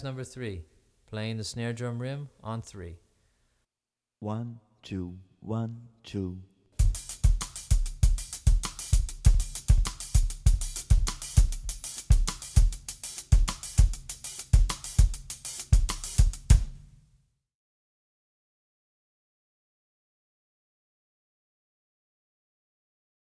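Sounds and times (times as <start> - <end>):
bass drum variations: 6.8 - 17.0.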